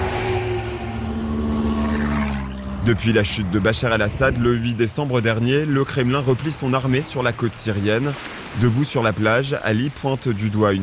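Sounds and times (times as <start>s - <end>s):
military vehicles engines roaring speeding along a road: 0.0s - 5.5s
speech: 2.8s - 10.8s.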